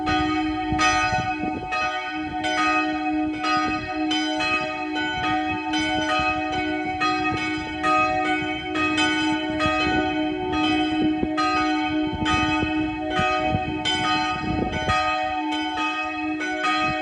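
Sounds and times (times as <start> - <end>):
multi-voice bell peal on D sharp and F sharp: 0.0 - 17.0.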